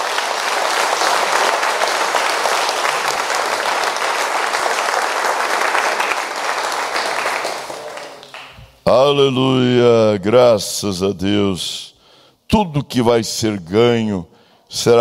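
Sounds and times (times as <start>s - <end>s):
audience applause: 0.0s - 8.6s
speech: 8.9s - 11.9s, 12.5s - 15.0s.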